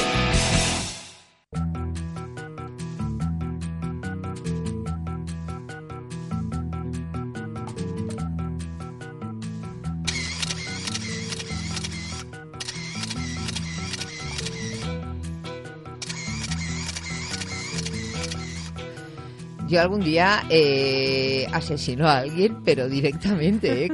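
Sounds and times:
steady tonal music: 0:01.6 - 0:23.9
camera shutter firing in rapid burst: 0:10.1 - 0:14.9, 0:16.0 - 0:18.8
speech: 0:19.7 - 0:23.9.

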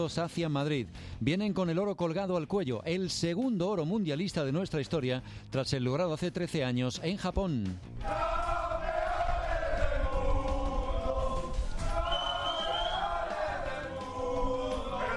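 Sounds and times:
speech: 0:00.0 - 0:08.3
players of the Spanish team shouting: 0:08.0 - 0:15.1.

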